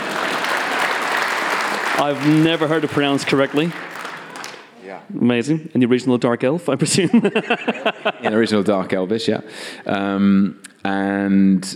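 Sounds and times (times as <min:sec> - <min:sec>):
live audience applause: 0:00.0 - 0:04.7
speech: 0:02.0 - 0:03.9, 0:04.9 - 0:11.7
laughter: 0:06.8 - 0:09.0.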